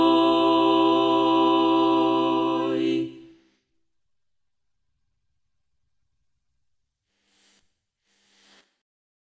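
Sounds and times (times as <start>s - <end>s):
sopranos singing: 0.0s - 3.4s.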